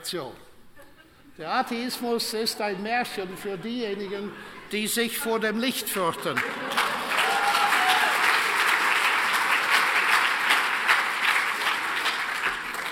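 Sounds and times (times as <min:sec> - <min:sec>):
speech: 0:00.1 - 0:00.4, 0:01.4 - 0:06.7
laughter: 0:00.8 - 0:05.0, 0:05.8 - 0:07.6
audience applause: 0:06.3 - 0:12.9.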